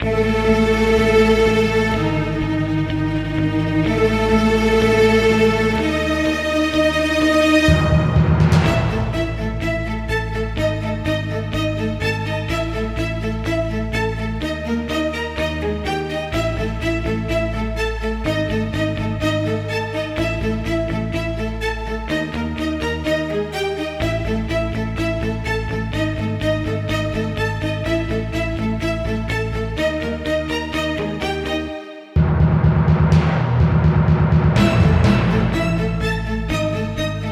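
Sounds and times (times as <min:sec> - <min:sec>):
tension music: 0:00.0 - 0:37.3.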